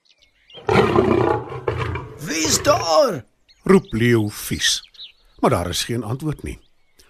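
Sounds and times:
leopard growling: 0:00.5 - 0:03.1
speech: 0:02.4 - 0:06.6.

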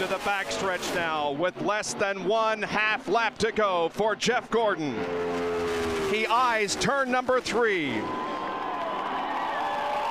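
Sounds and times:
speech: 0:00.0 - 0:08.3
race crowd cheering: 0:00.0 - 0:10.1
whoops: 0:08.0 - 0:10.1.

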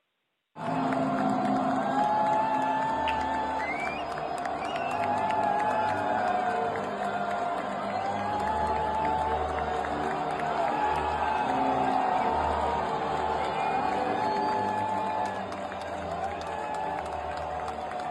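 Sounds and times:
large stadium crowd roaring and applauding: 0:00.6 - 0:18.0
shrill whistles of disapproval: 0:03.0 - 0:06.0, 0:13.2 - 0:15.4.

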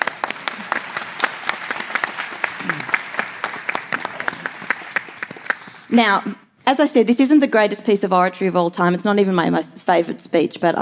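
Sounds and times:
audience applause: 0:00.0 - 0:05.9
speech: 0:05.9 - 0:10.7.

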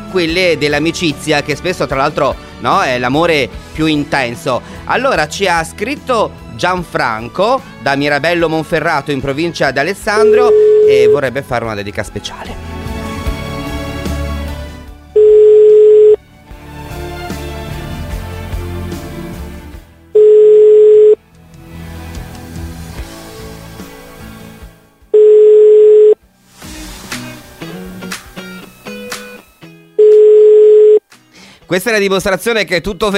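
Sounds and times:
speech: 0:00.1 - 0:12.7, 0:31.7 - 0:33.1
radio programme sound: 0:10.1 - 0:11.3
unanswered telephone ringback tones during a live radio call: 0:10.2 - 0:11.2, 0:15.2 - 0:16.2, 0:20.2 - 0:21.2, 0:25.2 - 0:26.2, 0:30.0 - 0:31.0.

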